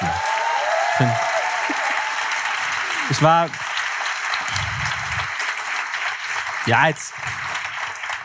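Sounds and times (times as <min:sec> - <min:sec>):
live audience clapping and cheering: 0:00.0 - 0:08.2
speech: 0:01.0 - 0:01.3, 0:03.1 - 0:03.6, 0:06.6 - 0:07.4.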